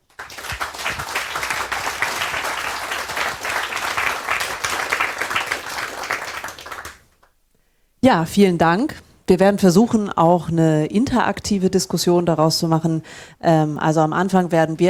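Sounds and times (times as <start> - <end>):
crowd applauding for panel: 0.0 - 7.3
speech: 8.0 - 14.8.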